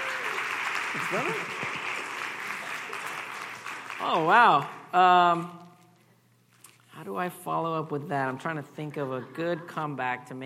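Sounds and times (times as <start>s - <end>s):
audience cheering: 0.0s - 3.2s
audience applause: 0.0s - 4.6s
speech: 0.9s - 1.8s, 4.0s - 5.7s, 7.0s - 10.4s.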